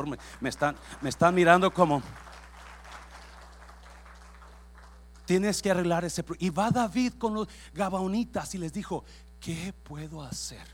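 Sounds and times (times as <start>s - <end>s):
speech: 0.0s - 2.4s, 5.3s - 10.7s
loud applause: 0.7s - 5.0s.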